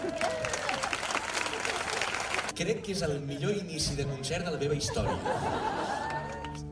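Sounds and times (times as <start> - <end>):
audience applause: 0.0 - 2.6, 5.6 - 6.6
speech: 2.6 - 5.8
laughter: 4.6 - 6.6.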